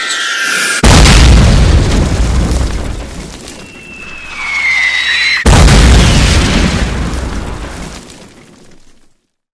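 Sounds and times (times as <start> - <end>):
incoming mortar fire in war: 0.8 - 8.0.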